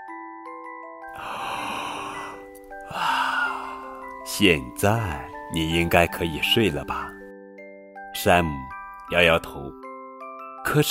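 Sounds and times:
soft sustained music: 0:00.0 - 0:10.9
person imitating a yawn: 0:01.1 - 0:03.9
speech: 0:04.3 - 0:07.2, 0:08.2 - 0:09.8, 0:10.7 - 0:10.9.

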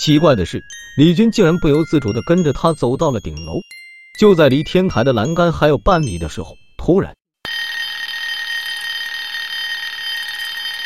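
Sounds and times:
speech: 0:00.0 - 0:07.2
phone ringing: 0:07.5 - 0:10.8.

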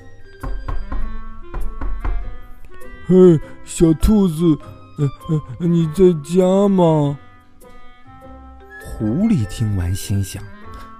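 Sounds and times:
knocking on a door: 0:00.4 - 0:02.4
speech: 0:03.1 - 0:07.2, 0:08.9 - 0:10.5.

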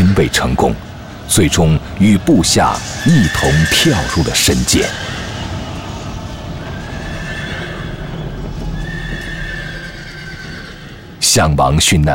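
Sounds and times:
speech: 0:00.2 - 0:05.2, 0:11.4 - 0:12.1
horses neighing: 0:02.3 - 0:11.2
hooves clopping: 0:02.7 - 0:11.2.

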